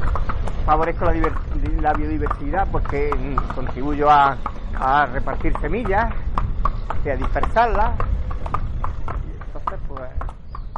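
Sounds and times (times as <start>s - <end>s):
horse hooves clip-clopping at walking pace: 0.0s - 10.7s
low rumbling background: 0.0s - 10.7s
speech: 0.7s - 6.3s, 7.0s - 8.1s.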